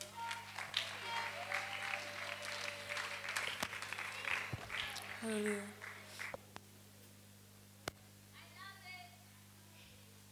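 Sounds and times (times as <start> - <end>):
crowd clapping: 0.0 - 6.4
faint hum: 0.0 - 10.3
speech: 5.2 - 5.8.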